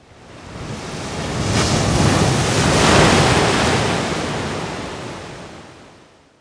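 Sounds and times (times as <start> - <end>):
ocean waves: 0.1 - 6.1.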